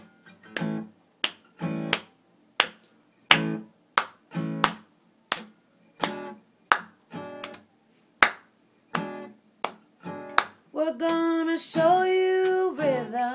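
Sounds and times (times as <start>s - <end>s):
hands clapping in rhythm: 0.0s - 11.3s, 12.4s - 13.0s
speech: 10.8s - 13.3s.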